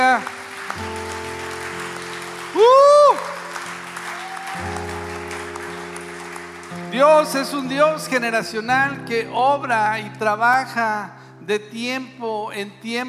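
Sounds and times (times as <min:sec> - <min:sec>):
audience applause: 0:00.0 - 0:07.7
speech: 0:07.0 - 0:13.0.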